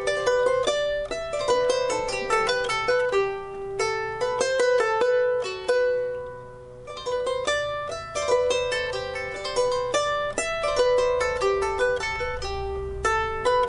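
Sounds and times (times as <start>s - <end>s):
harp playing: 0.0s - 13.6s.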